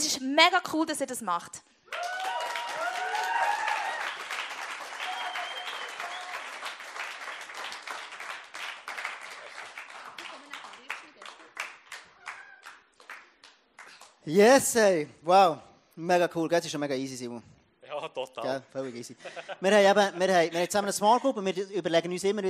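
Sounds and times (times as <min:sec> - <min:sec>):
speech: 0:00.1 - 0:02.3, 0:14.3 - 0:22.4
cheering and whistles: 0:01.9 - 0:06.6
crowd applauding: 0:01.9 - 0:14.2.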